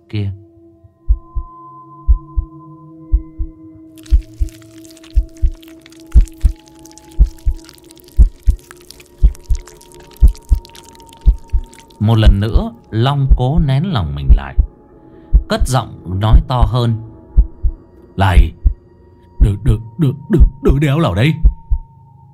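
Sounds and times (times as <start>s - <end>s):
speech: 0.1s - 0.4s, 12.1s - 14.6s, 15.5s - 17.1s, 18.2s - 18.6s, 19.5s - 21.5s
heart pounding in the chest: 1.1s - 1.5s, 2.1s - 2.5s, 3.1s - 3.5s, 4.1s - 4.6s, 5.2s - 5.6s, 7.2s - 7.6s, 8.2s - 8.6s, 9.2s - 12.6s, 13.3s - 13.7s, 14.3s - 14.7s, 15.3s - 17.8s, 18.4s - 18.8s, 19.4s - 20.8s, 21.4s - 21.8s.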